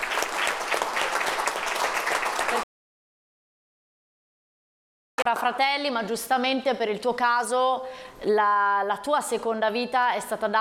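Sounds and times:
audience applause: 0.0 - 2.7
speech: 5.3 - 10.5.

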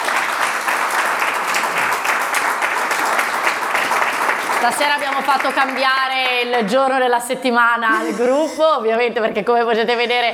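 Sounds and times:
audience applause: 0.0 - 6.4
speech: 4.6 - 10.3.

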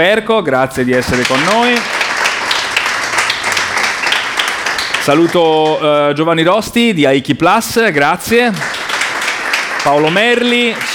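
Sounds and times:
speech: 0.0 - 2.0, 5.0 - 8.9, 9.8 - 10.9
audience applause at a corporate conference welcoming a board director: 0.8 - 6.0, 8.5 - 10.9.

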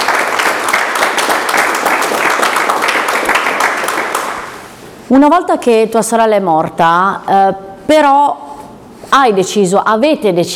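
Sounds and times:
applause: 0.0 - 4.7
speech: 5.1 - 8.4, 9.1 - 10.5.

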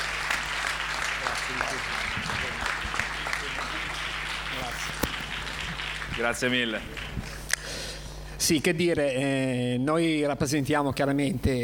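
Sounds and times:
audience applause: 0.0 - 7.3
speech: 1.5 - 2.7, 4.5 - 5.4, 6.2 - 7.2, 8.4 - 11.6.

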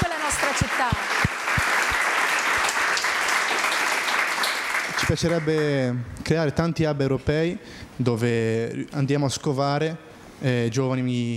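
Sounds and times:
crowd clapping: 0.0 - 5.8
speech: 5.1 - 11.3.

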